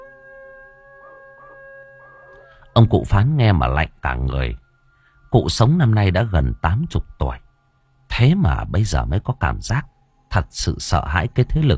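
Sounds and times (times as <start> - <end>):
dog howling: 0.0 - 2.6
speech: 2.8 - 4.6, 5.3 - 7.4, 8.2 - 11.7.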